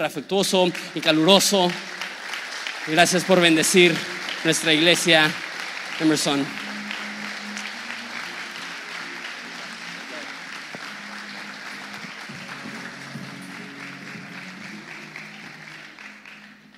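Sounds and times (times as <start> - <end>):
speech: 0.0 - 2.0, 2.8 - 6.6
audience applauding warmly: 0.0 - 16.7.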